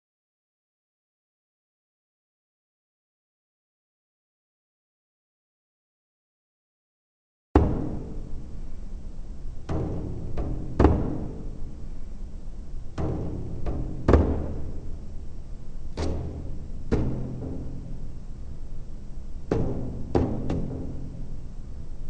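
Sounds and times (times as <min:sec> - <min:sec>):
slow bodhran drumming: 0:07.6 - 0:21.9.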